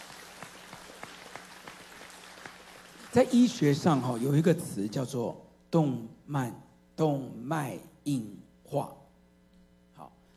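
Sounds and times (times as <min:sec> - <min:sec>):
audience clapping: 0:00.0 - 0:05.1
speech: 0:03.1 - 0:09.0.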